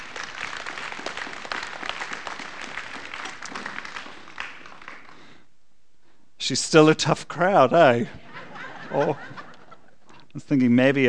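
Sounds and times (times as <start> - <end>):
audience applause: 0.0 - 5.3
speech: 6.5 - 8.2, 8.9 - 9.4, 10.4 - 11.0
laughter: 7.8 - 10.2.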